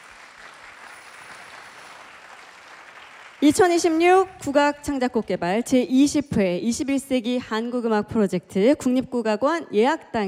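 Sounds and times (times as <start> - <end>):
audience applause: 0.0 - 3.4
speech: 3.4 - 10.2.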